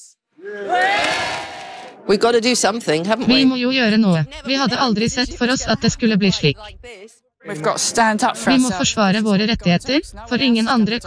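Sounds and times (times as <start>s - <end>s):
villagers roaring together: 0.4s - 2.1s
speech: 2.1s - 11.0s.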